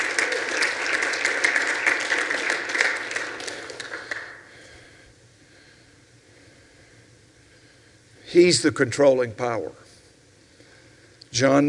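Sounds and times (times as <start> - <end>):
audience applause: 0.0 - 4.5
speech: 8.3 - 9.9, 11.4 - 11.6.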